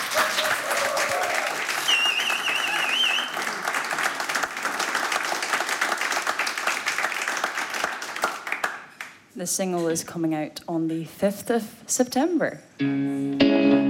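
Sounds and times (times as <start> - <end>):
audience applause: 0.0 - 9.2
speech: 9.4 - 13.8.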